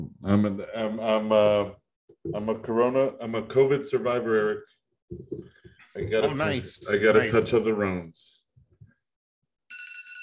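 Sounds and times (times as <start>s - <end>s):
speech: 0.2s - 8.4s
phone timer alarm ringing: 9.7s - 10.2s.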